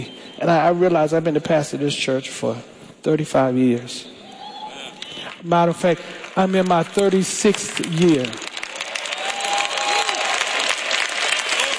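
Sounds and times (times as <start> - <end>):
speech: 0.0 - 4.2, 5.4 - 8.5
audience clapping: 5.0 - 11.7.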